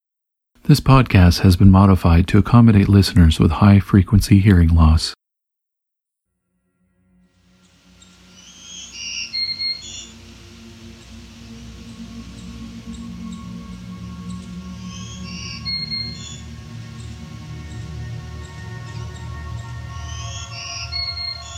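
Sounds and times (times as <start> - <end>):
speech: 0.7 - 5.2
black-throated green warbler singing: 7.5 - 21.5
steady low rumble: 8.0 - 21.5.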